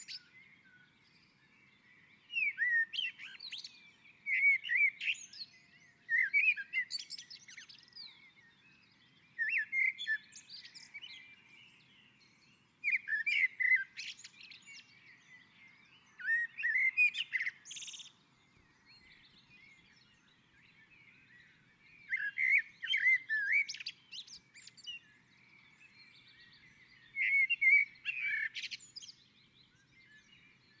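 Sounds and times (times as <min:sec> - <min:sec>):
common blackbird singing: 0:00.0 - 0:30.7.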